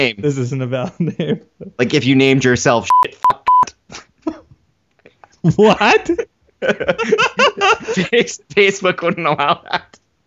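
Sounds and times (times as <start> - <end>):
speech: 0.0 - 4.0, 5.4 - 10.0
censor bleep: 2.9 - 3.7
laughter: 5.5 - 10.0.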